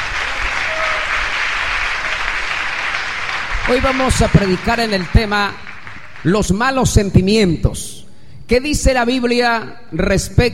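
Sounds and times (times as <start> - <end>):
audience applause: 0.0 - 6.7
speech: 3.7 - 10.5.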